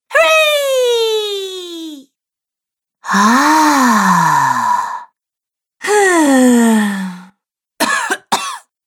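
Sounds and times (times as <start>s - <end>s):
woman vocalizing: 0.1s - 2.1s, 3.0s - 5.0s, 5.8s - 7.3s.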